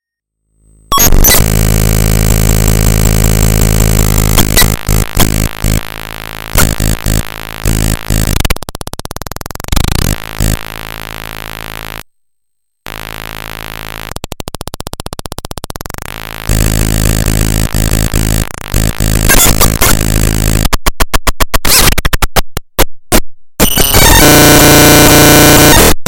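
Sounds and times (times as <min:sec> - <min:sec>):
circuit bent Game Boy noise: 0:00.7 - 0:12.0, 0:12.9 - 0:22.6, 0:23.6 - 0:25.9.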